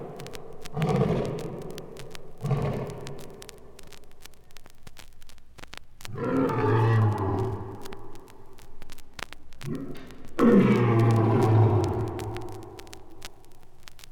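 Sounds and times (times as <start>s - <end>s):
lion roaring: 0.8s - 1.6s, 2.4s - 3.2s, 6.1s - 7.6s, 9.7s - 12.2s.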